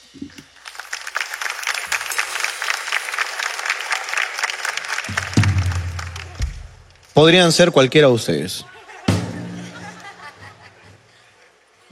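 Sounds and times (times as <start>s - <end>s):
audience applause: 0.5s - 6.9s
speech: 7.2s - 8.7s
laughter: 8.5s - 11.9s.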